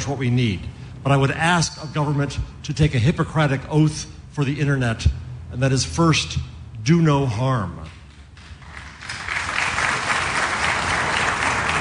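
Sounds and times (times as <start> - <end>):
speech: 0.0 - 8.0
scattered audience applause: 8.5 - 11.7.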